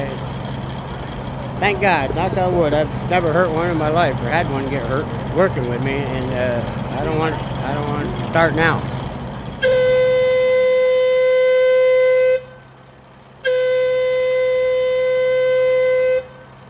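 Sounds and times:
low rumbling: 0.0 - 16.6
speech: 1.6 - 8.9
one-minute warning siren before tunnel blast: 9.6 - 12.8, 13.4 - 16.6.

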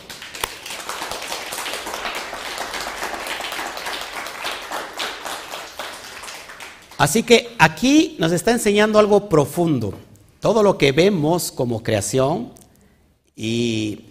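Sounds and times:
audience applause: 0.0 - 7.0
speech: 7.0 - 12.6, 13.4 - 14.0.

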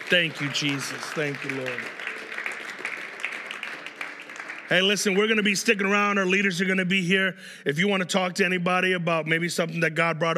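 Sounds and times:
hand clapping applause: 0.0 - 6.8
speech: 0.1 - 2.0, 4.7 - 10.3.

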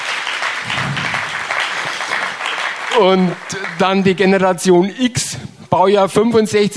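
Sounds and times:
audience applause: 0.0 - 4.4
speech: 3.0 - 6.7.

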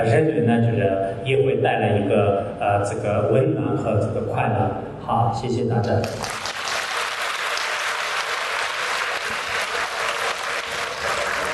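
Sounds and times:
speech: 0.0 - 6.4
warm applause from audience: 6.1 - 11.5.

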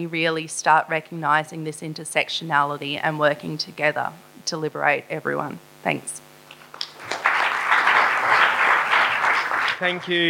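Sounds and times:
speech: 0.0 - 6.2, 9.8 - 10.2
audience applause: 6.5 - 10.2.

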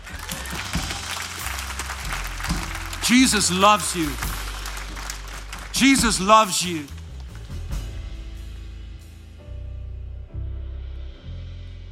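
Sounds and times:
audience clapping: 0.0 - 7.9
speech: 3.1 - 4.3, 5.8 - 7.0.

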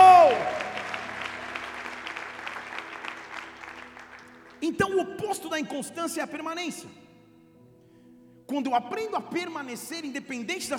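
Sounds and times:
audience applauding: 0.0 - 4.8
speech: 4.7 - 7.0, 8.5 - 10.7.

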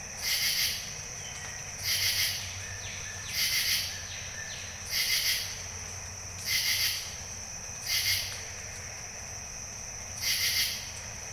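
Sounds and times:
constant high insect-like hiss: 0.0 - 11.3
bird-voiced treefrogs calling at Jessamine Bayou: 0.2 - 5.6, 6.4 - 7.2, 7.8 - 8.3, 10.2 - 10.9.

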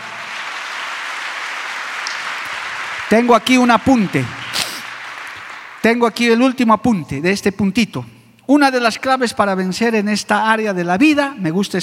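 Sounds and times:
audience applause: 0.0 - 6.5
speech: 3.1 - 4.4, 5.8 - 11.8.

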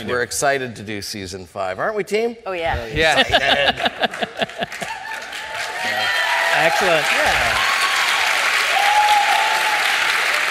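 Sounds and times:
speech: 0.0 - 4.8, 6.6 - 7.7
laughter: 2.8 - 5.3
crowd applauding: 3.5 - 10.5.

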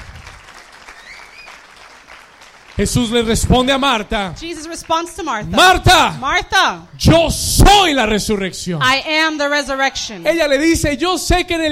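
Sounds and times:
audience applause: 0.0 - 5.1
whistle or cheer: 0.9 - 1.7
speech: 2.8 - 11.7.

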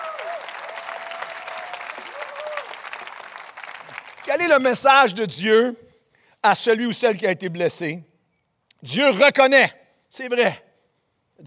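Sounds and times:
faint high whistles or cheers: 0.0 - 3.0
audience applauding: 0.0 - 4.5
speech: 4.3 - 5.8, 6.4 - 8.1, 8.8 - 10.6.

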